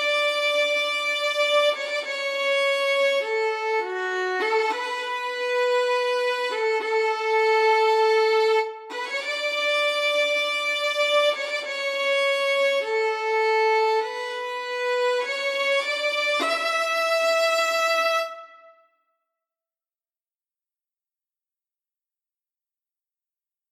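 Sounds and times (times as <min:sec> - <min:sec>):
violin arrangement: 0:00.0 - 0:18.9.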